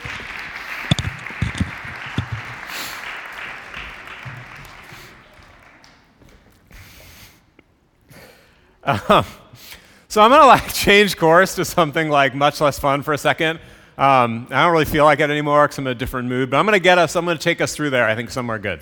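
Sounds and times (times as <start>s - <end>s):
audience applause for a speaker: 0.0s - 6.5s
speech: 8.9s - 9.4s, 10.1s - 18.8s.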